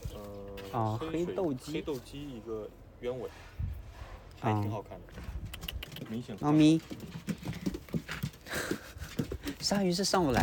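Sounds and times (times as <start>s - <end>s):
speech: 0.7s - 3.7s, 4.4s - 7.3s, 9.7s - 10.4s
small dog pattering around: 5.1s - 10.4s.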